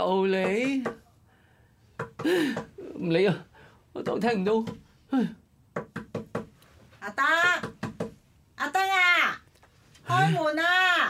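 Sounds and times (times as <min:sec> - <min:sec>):
speech: 0:00.0 - 0:01.0, 0:02.2 - 0:05.4, 0:10.1 - 0:11.0
sharp knocking on a door: 0:00.4 - 0:01.0, 0:02.0 - 0:02.7, 0:05.7 - 0:06.6, 0:07.4 - 0:08.2
person shouting in Cantonese: 0:10.1 - 0:10.4.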